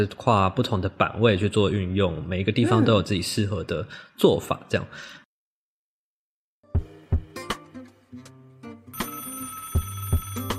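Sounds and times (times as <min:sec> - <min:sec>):
speech: 0:00.0 - 0:05.2
melodic electronic phone ringtone: 0:08.9 - 0:10.5.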